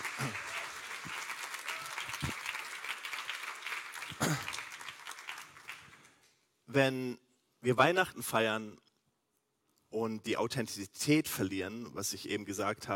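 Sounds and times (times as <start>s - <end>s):
audience applause: 0.0s - 6.2s
speech: 6.8s - 8.8s, 9.9s - 12.9s.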